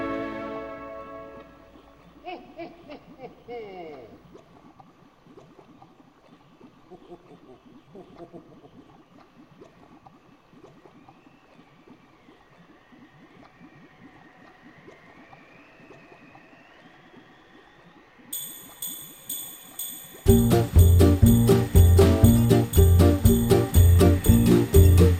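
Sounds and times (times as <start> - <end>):
Christmas ambience: 0.0 - 2.9, 18.4 - 25.1.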